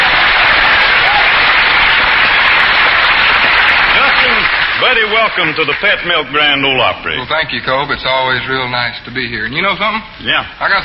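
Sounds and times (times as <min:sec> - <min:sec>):
studio audience applause welcoming a guest at the Grand Ole Opry: 0:00.0 - 0:06.4
speech: 0:04.9 - 0:10.8.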